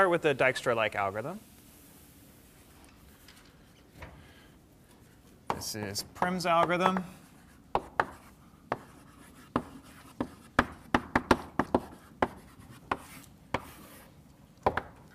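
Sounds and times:
speech: 0:00.0 - 0:01.5, 0:05.6 - 0:07.2
writing on a board during a lecture: 0:05.4 - 0:15.0.

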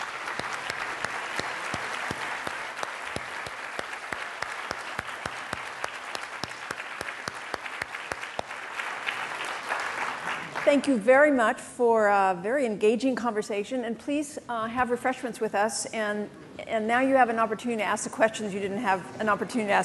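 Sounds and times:
audience applause: 0:00.0 - 0:10.7
speech: 0:10.7 - 0:19.8.

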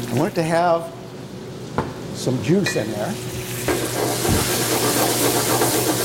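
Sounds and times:
speech: 0:00.2 - 0:01.0, 0:02.2 - 0:04.4
wine and green onion sizzling in a hot cooking pan for an Italian dish: 0:03.2 - 0:06.0.

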